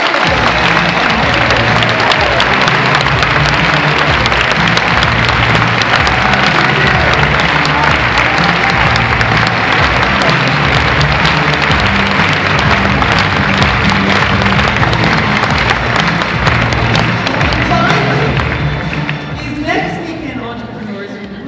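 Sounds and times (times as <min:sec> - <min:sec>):
audience applause for contest winners: 0:00.0 - 0:19.9
low musical drone: 0:00.3 - 0:20.9.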